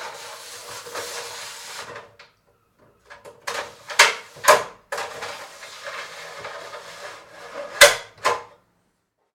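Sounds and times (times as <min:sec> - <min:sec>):
aluminum light loft ladder sliding: 0:00.0 - 0:02.3, 0:03.1 - 0:08.5.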